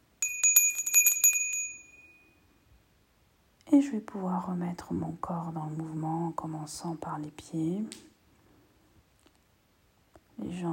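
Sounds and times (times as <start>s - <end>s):
small bell ringing: 0.1s - 2.6s
speech: 3.7s - 8.1s, 10.4s - 10.7s.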